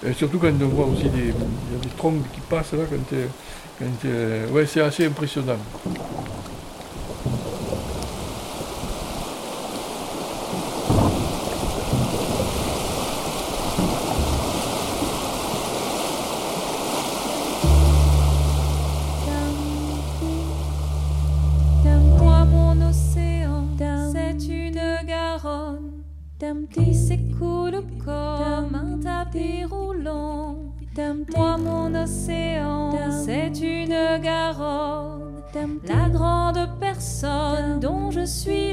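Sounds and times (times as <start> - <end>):
speech: 0.0 - 6.4
Garonne river in flood rolling gravel downstream: 0.0 - 21.8
music: 17.6 - 38.7.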